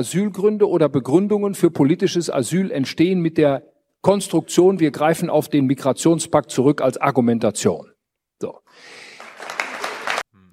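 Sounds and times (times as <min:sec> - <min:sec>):
speech: 0:00.0 - 0:09.0
applause: 0:09.0 - 0:10.3.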